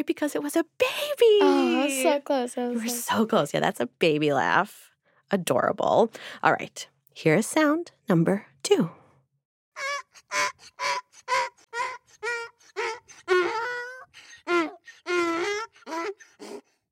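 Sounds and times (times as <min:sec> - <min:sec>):
speech: 0:00.0 - 0:09.0
donkey braying: 0:09.8 - 0:16.7.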